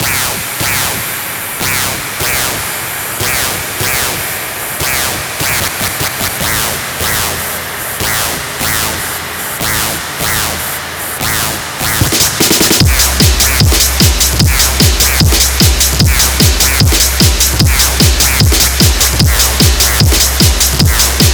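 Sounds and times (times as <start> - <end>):
extreme techno music: 0.0 - 21.3.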